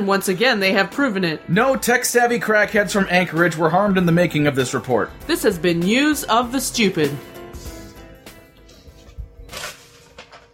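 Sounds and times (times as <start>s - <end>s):
speech: 0.0s - 7.3s
paper rustling: 7.6s - 10.5s.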